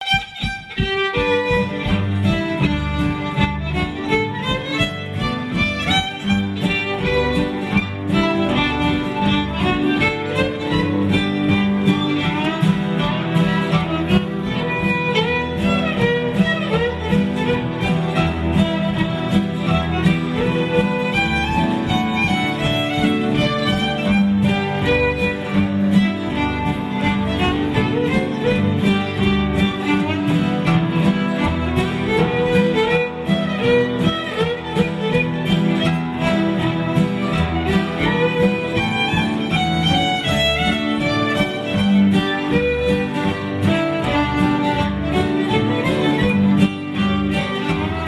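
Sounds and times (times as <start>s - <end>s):
waltz: 0.0s - 48.0s.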